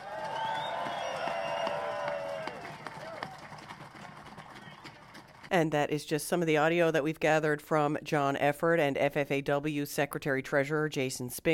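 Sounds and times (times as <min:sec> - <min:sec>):
round of applause at a protest: 0:00.0 - 0:05.5
speech: 0:05.5 - 0:11.5.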